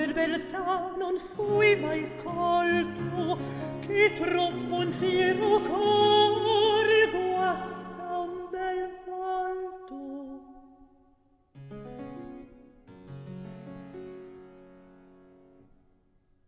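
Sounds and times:
recitative singing: 0.0 - 10.8.

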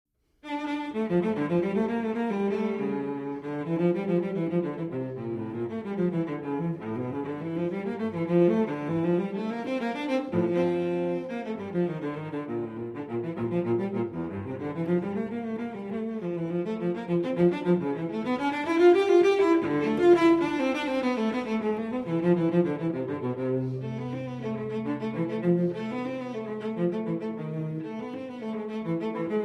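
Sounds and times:
cello piece: 0.3 - 29.4.

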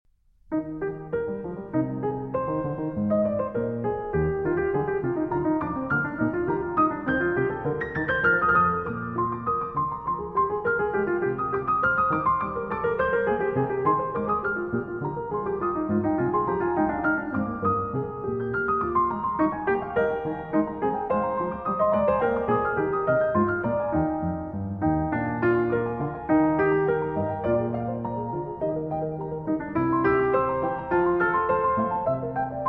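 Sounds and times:
trio sonata: 0.5 - 32.6.

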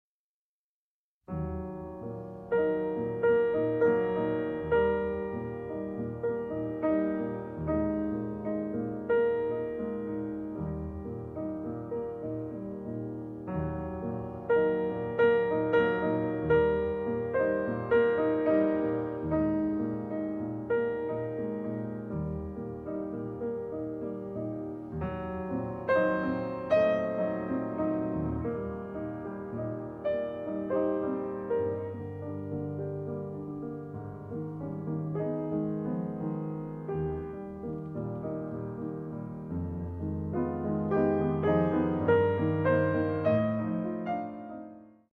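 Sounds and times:
cello sonata movement in G minor, andante: 1.3 - 45.1.

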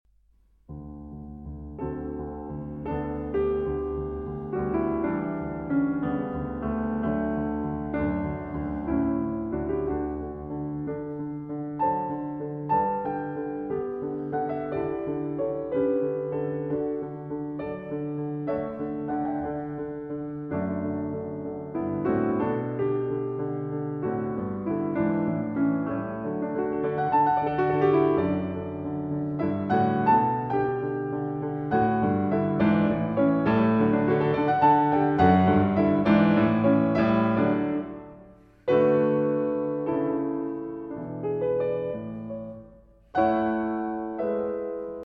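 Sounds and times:
piano sonata: 0.1 - 45.0.

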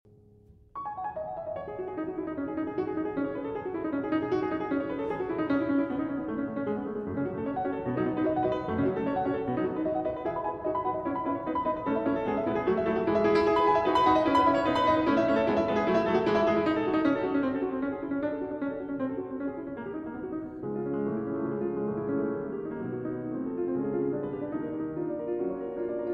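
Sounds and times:
piano toccata: 0.1 - 26.1.

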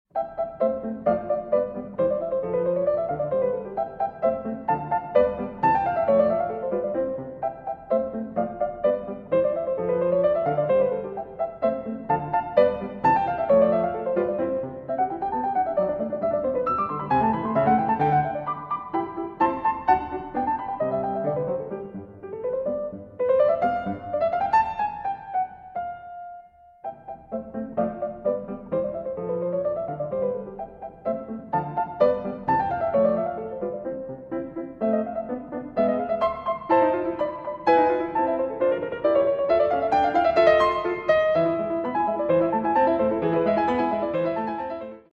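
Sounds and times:
piano sonata rondo: 0.0 - 45.1.

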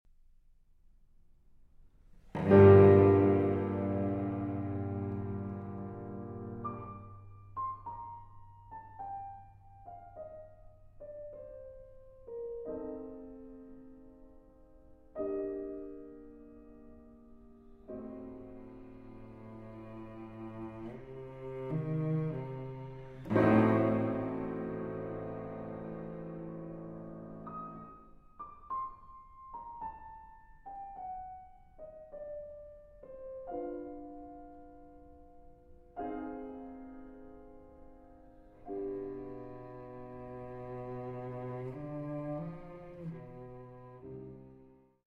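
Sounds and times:
cello sonata: 2.0 - 30.0, 33.0 - 45.0.

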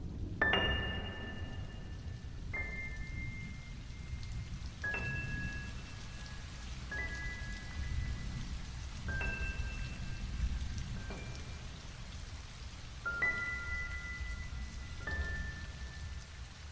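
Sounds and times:
sad piano: 0.4 - 16.6.

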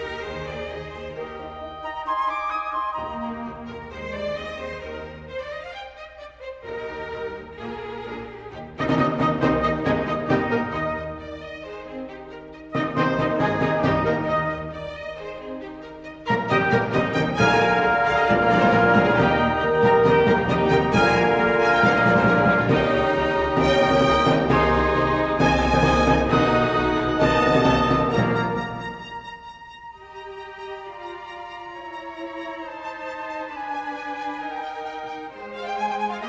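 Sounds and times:
trumpet concerto: 0.5 - 6.5, 8.6 - 11.5, 12.4 - 36.2.

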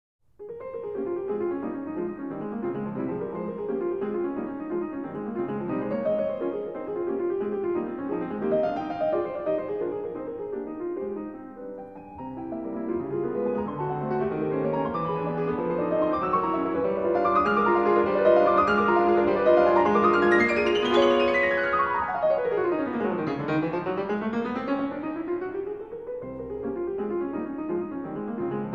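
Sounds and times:
impromptu in F minor: 0.2 - 28.7.

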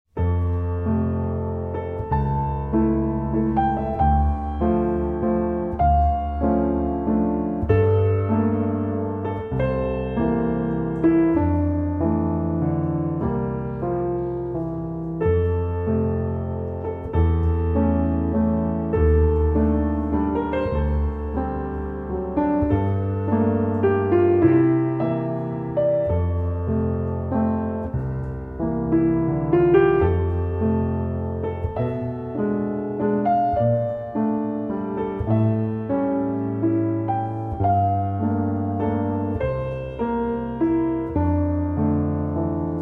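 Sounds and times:
piano minuets: 0.1 - 42.8.

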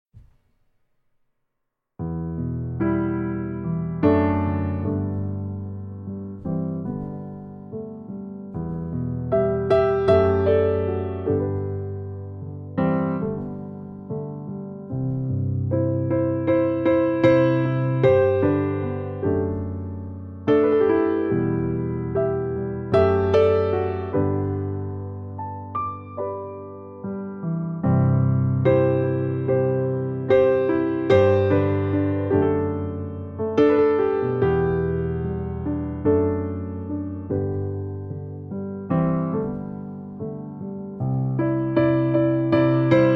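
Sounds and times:
piano music: 2.0 - 43.1.

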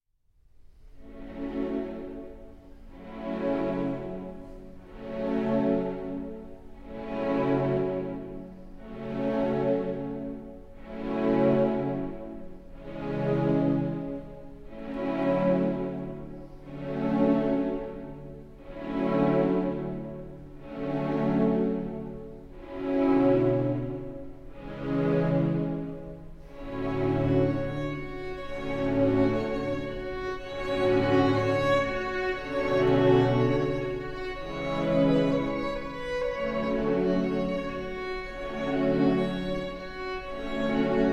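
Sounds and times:
string orchestra: 0.6 - 41.1.

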